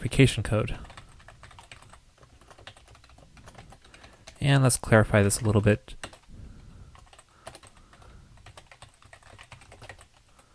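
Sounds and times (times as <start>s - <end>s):
speech: 0.1s - 0.9s, 4.4s - 6.0s
typing on a computer keyboard: 0.8s - 4.4s, 5.4s - 6.3s, 6.9s - 10.5s.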